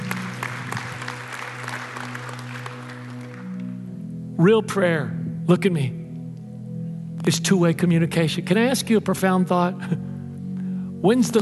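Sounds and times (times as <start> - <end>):
audience clapping: 0.0 - 3.8
speech: 4.4 - 6.0, 7.2 - 10.1, 11.0 - 11.4.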